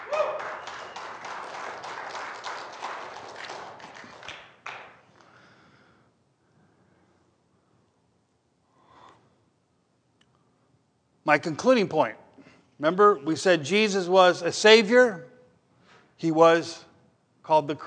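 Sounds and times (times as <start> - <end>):
audience clapping: 0.0 - 5.2
speech: 11.3 - 12.2, 12.8 - 15.3, 16.2 - 16.9, 17.5 - 17.8.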